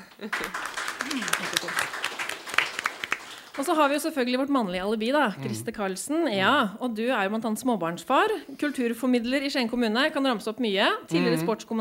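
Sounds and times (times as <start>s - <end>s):
crowd clapping: 0.0s - 4.1s
speech: 0.2s - 2.0s, 3.6s - 11.8s.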